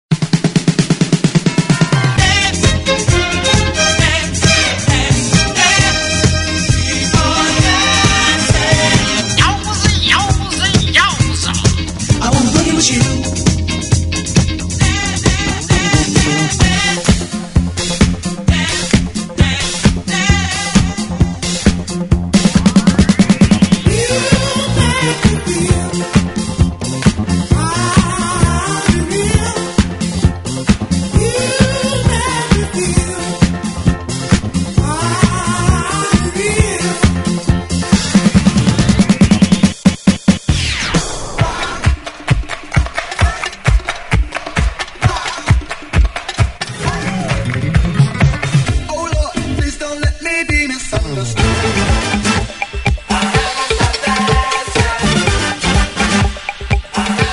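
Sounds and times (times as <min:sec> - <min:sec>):
1970s disco music: 0:00.1 - 0:57.3.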